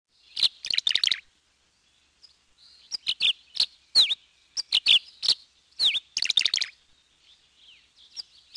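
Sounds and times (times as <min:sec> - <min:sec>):
tree swallow giving rapid scratchy chirps: 0:00.3 - 0:01.3, 0:02.2 - 0:06.8.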